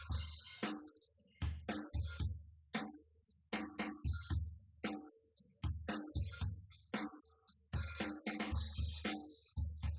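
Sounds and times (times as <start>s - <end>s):
drums: 0.0s - 9.9s.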